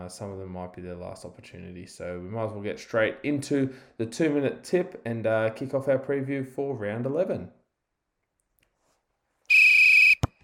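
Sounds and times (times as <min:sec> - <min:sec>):
speech: 0:00.1 - 0:07.6
referee's whistle for kickoff: 0:09.5 - 0:10.4.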